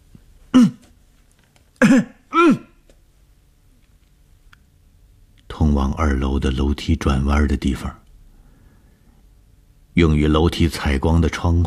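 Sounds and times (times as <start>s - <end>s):
loud harsh coughs from a person walking toward the stairs: 0.5s - 0.9s, 1.8s - 2.8s
speech: 1.9s - 2.6s, 5.9s - 8.0s, 10.0s - 11.6s.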